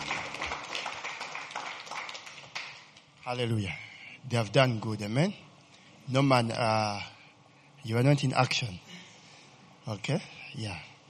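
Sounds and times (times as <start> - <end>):
audience hand clapping: 0.0 - 3.2
speech: 3.2 - 5.4, 6.1 - 7.1, 7.8 - 9.0, 9.8 - 10.9.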